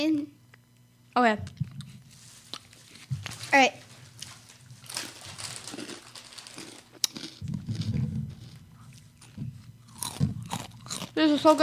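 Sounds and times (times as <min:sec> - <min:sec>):
speech: 0:00.0 - 0:00.4, 0:01.2 - 0:01.6, 0:03.5 - 0:03.8, 0:11.2 - 0:11.6
crunching of Cheetos being eaten: 0:04.1 - 0:11.6.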